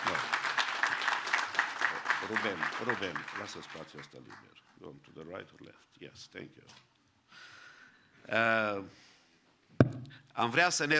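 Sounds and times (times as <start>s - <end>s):
crowd applauding: 0.0s - 4.8s
speech: 2.3s - 7.5s, 8.2s - 9.1s, 9.7s - 10.9s.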